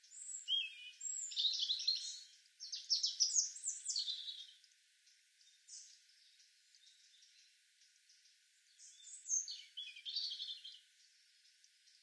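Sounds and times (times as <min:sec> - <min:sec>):
European robin Erithacus rubecula singing: 0:00.0 - 0:04.6, 0:08.2 - 0:10.9.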